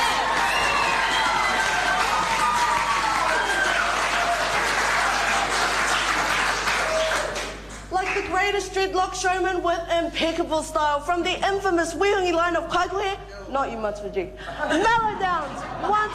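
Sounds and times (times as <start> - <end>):
large crowd applause: 0.0 - 8.2
speech: 8.8 - 16.1.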